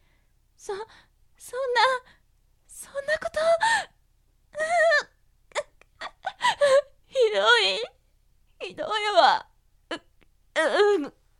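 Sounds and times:
speech: 0.6s - 2.2s, 2.8s - 3.9s, 10.6s - 11.2s
woman crying with wails and gasping sobs: 4.6s - 7.9s.

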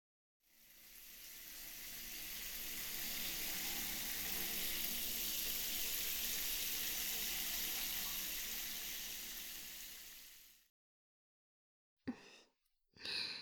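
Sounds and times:
running water rinsing someone off in a bathroom: 1.1s - 10.6s
short breathy sounds: 12.1s - 13.4s.

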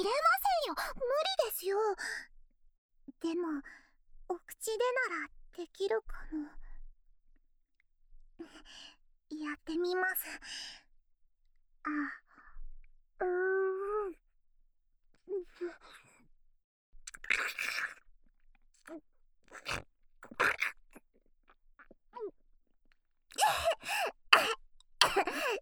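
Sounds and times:
speech: 0.0s - 2.3s, 3.2s - 6.6s, 8.4s - 10.8s, 11.8s - 12.2s, 13.2s - 14.2s, 15.3s - 16.0s, 18.9s - 20.8s
coughing after choking: 23.3s - 25.6s
woman moaning: 23.4s - 24.0s.

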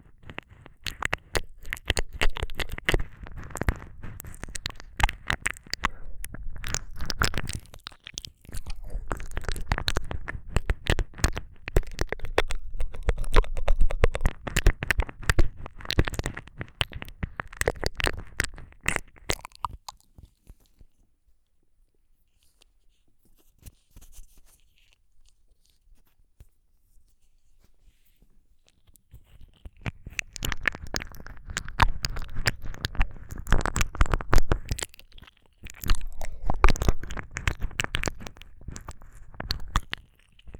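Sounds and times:
ear licking with tongue: 0.0s - 20.8s, 29.1s - 40.5s.

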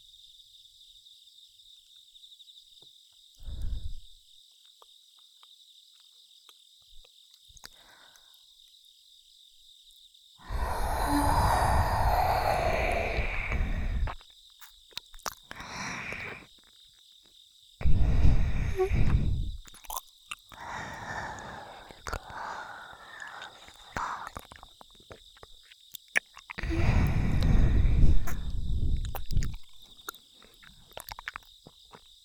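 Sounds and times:
ear licking sounds: 10.4s - 16.5s, 17.8s - 32.2s.

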